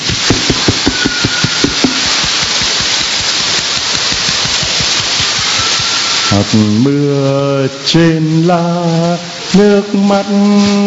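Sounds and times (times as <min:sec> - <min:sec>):
crowd clapping with hand fans: 0:00.0 - 0:06.4
speech: 0:06.3 - 0:10.8.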